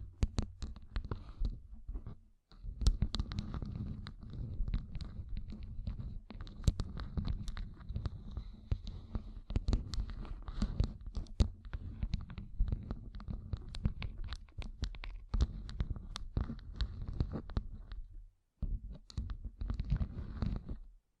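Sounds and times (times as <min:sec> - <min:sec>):
gem-covered fingertips tapping and scratching: 0:00.0 - 0:20.9.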